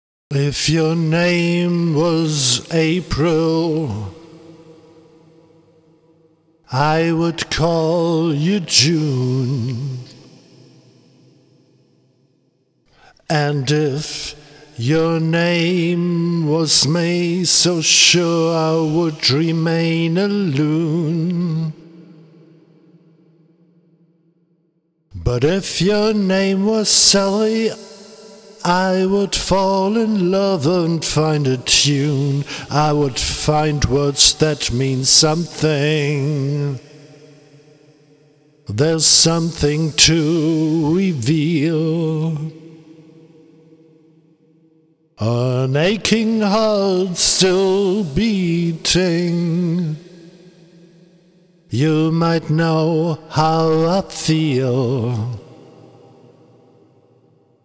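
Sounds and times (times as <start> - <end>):
person singing blues as a test: 0.3 - 4.3, 6.7 - 10.3, 13.2 - 21.9, 25.2 - 27.9, 28.6 - 36.9, 38.7 - 42.6, 45.2 - 50.0, 51.8 - 55.6.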